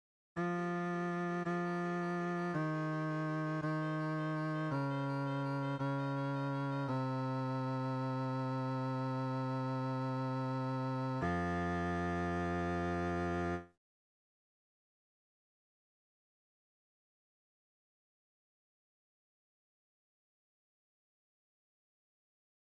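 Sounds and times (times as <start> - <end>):
bass: 0.4 - 13.8.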